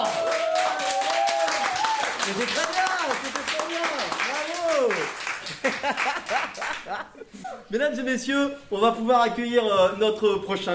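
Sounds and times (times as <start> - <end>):
audience applause after a poetry recital: 0.0 - 6.9
speech: 2.3 - 3.4, 4.8 - 10.7
laughter: 5.4 - 7.7.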